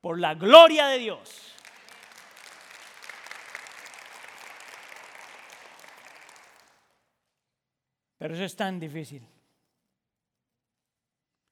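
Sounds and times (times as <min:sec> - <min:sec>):
speech: 0:00.0 - 0:01.5, 0:08.2 - 0:09.3
audience applause: 0:01.4 - 0:06.8.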